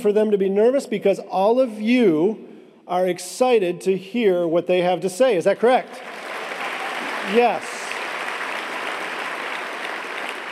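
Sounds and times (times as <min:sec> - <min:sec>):
speech: 0:00.0 - 0:06.2, 0:07.2 - 0:07.7
audience applause: 0:05.9 - 0:10.5.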